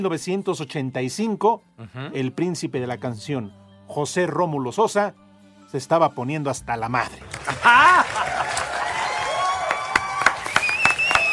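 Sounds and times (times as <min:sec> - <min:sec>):
speech: 0:00.0 - 0:08.0
crowd applauding: 0:07.2 - 0:11.3
laughter: 0:07.3 - 0:09.3
whistles and cheers: 0:08.2 - 0:11.3.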